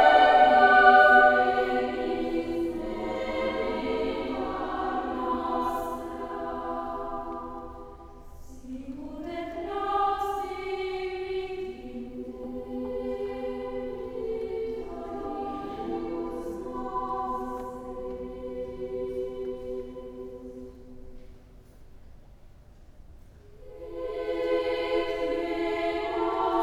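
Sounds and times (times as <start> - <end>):
children's choir singing: 0.0 - 21.2, 23.6 - 26.6.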